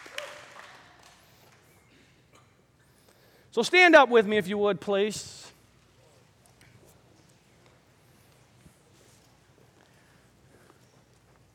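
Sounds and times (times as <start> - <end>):
church audience clapping: 0.0 - 1.8
speech: 3.6 - 5.4.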